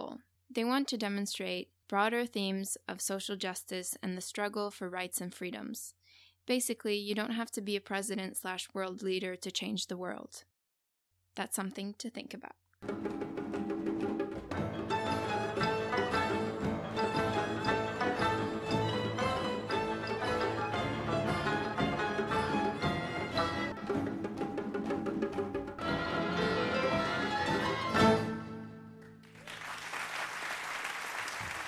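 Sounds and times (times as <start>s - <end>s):
speech: 0.6s - 10.5s, 11.4s - 13.6s
orchestra of 35 Afghan women playing: 12.8s - 29.1s
audience clapping: 29.0s - 31.6s.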